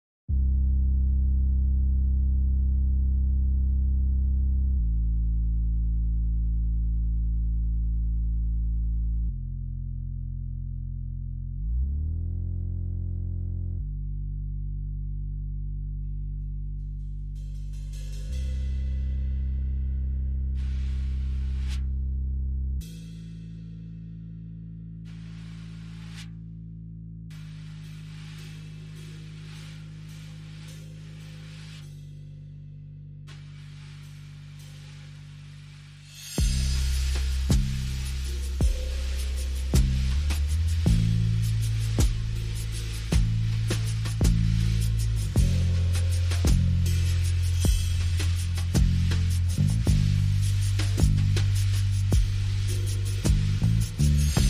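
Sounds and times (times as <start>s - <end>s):
bass: 0.0s - 54.4s
drums: 20.6s - 21.9s, 25.1s - 26.4s, 27.3s - 32.4s, 33.3s - 54.4s.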